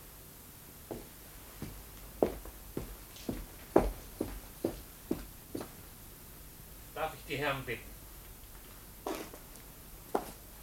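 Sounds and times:
footsteps walking to open a door: 0.9s - 5.8s, 9.0s - 9.5s, 10.1s - 10.4s
speech: 7.3s - 7.9s.

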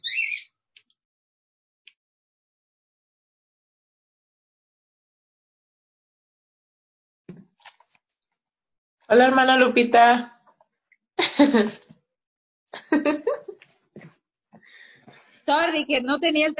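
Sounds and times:
pet bird chirping: 0.0s - 0.5s
speech: 9.1s - 10.4s, 11.4s - 11.8s, 12.9s - 13.4s, 15.5s - 16.5s
laughter: 11.2s - 11.8s, 12.8s - 13.6s.

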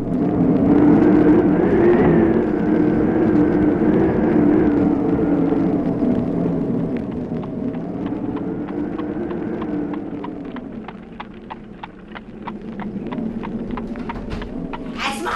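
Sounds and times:
low rumbling coach wheel and road noise: 0.0s - 15.3s
wind blowing: 0.0s - 15.3s
horse-drawn coach hooves clip-clopping: 5.1s - 15.3s.

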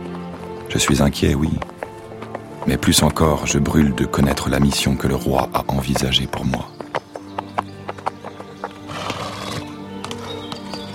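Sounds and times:
horse hooves clopping at the château of Dormans: 0.0s - 10.9s
speech: 0.7s - 1.8s, 2.6s - 6.8s
horse whinnying at the château of Dormans: 8.8s - 10.2s.

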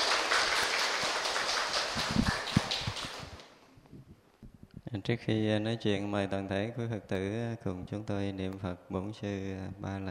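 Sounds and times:
audience applause: 0.0s - 3.4s
speech: 5.1s - 10.0s.

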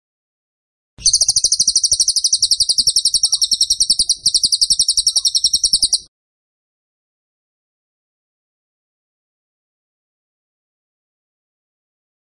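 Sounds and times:
bird trilling: 1.0s - 6.1s.

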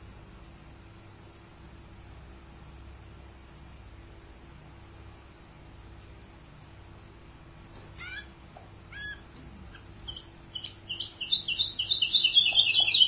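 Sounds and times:
canary song with high whistles, buzzy rattles and trills: 7.9s - 13.0s.

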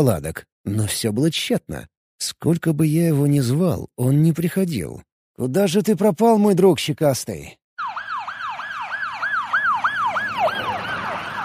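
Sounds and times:
speech: 0.0s - 8.0s
siren wailing beneath a window: 7.8s - 11.4s.

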